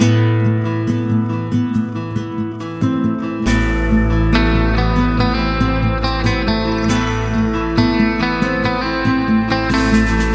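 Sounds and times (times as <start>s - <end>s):
sad guitar music: 0.0s - 10.3s.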